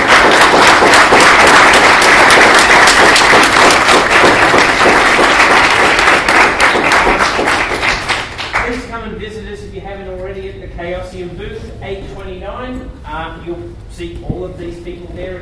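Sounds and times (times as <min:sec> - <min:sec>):
audience applause: 0:00.0 - 0:08.8.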